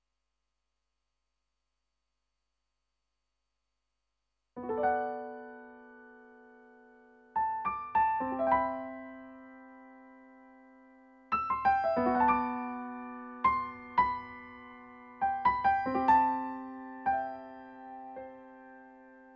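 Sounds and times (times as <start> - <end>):
piano: 4.6 - 19.3.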